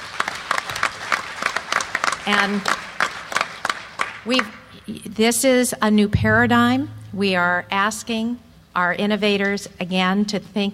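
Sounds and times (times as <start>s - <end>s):
audience applause: 0.0s - 4.2s
speech: 2.3s - 2.8s, 4.2s - 10.7s.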